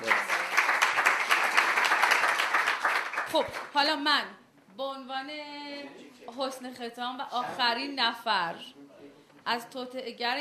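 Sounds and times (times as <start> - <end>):
group of people clapping hands for a birthday: 0.0 - 3.9
speech: 3.3 - 8.8, 9.5 - 10.3.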